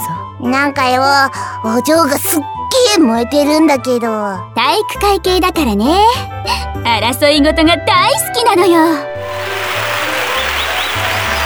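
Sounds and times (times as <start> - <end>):
speech: 0.4 - 9.1
crowd cheering at a school sports test: 9.1 - 11.4.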